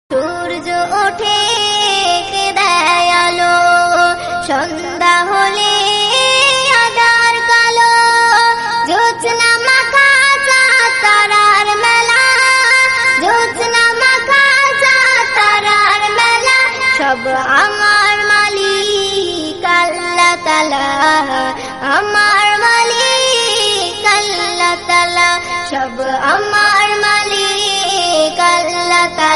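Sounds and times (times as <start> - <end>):
Islamic devotional naat singing: 0.4 - 29.3.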